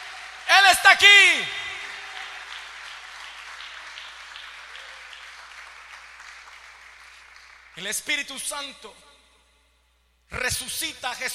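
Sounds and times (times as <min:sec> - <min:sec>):
audience applause for the Holy Spirit: 0:00.0 - 0:07.8
speech: 0:00.8 - 0:01.6, 0:07.8 - 0:09.1, 0:10.3 - 0:11.3.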